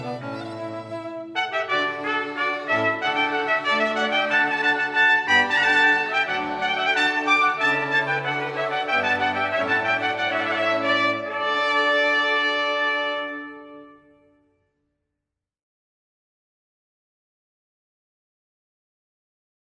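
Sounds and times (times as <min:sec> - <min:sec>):
string quartet: 0:00.0 - 0:13.8
two trumpets: 0:00.0 - 0:14.4.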